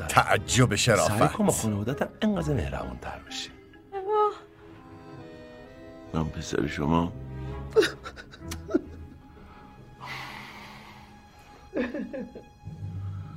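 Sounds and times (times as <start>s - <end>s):
speech: 0.2s - 3.6s, 6.1s - 8.8s
mother crying softly with whimpering gasps and sniffles: 7.7s - 9.2s
laughter: 7.7s - 9.3s, 11.7s - 12.6s.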